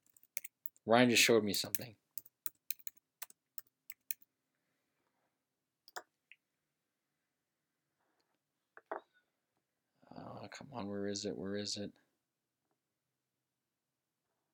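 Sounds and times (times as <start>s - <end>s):
typing on a computer keyboard: 0.0s - 0.8s, 1.5s - 4.2s
speech: 0.8s - 2.0s, 10.6s - 12.0s.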